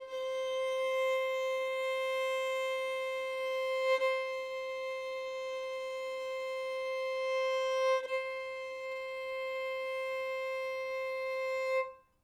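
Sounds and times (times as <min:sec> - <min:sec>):
violin: 0:00.0 - 0:12.2.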